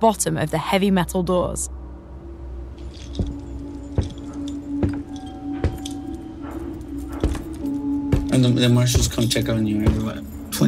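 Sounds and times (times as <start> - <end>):
speech: 0.0 - 1.8, 3.2 - 3.4, 8.4 - 10.6
keys jangling: 2.8 - 10.6.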